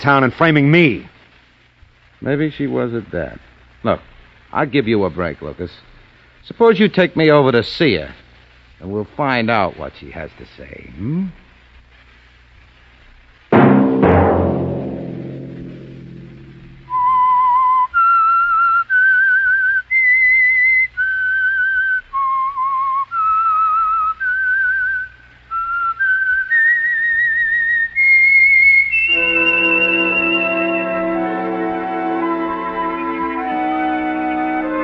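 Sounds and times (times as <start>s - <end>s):
speech: 0.0s - 1.1s, 2.2s - 8.2s, 8.8s - 11.4s
music: 13.5s - 18.1s, 28.7s - 34.8s
sharp ringing strike: 13.6s - 16.9s
person whistling a tune: 16.9s - 31.2s.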